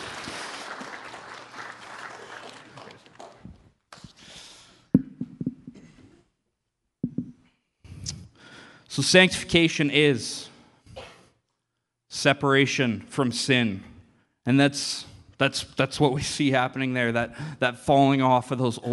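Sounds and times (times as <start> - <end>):
round of applause: 0.0 - 3.6
speech: 9.0 - 10.5, 12.2 - 18.9.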